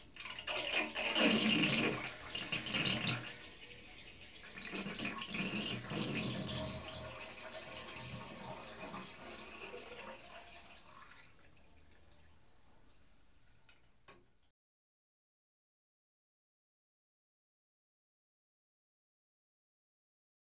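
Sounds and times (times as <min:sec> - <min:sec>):
household bath emptying: 0:00.0 - 0:11.3.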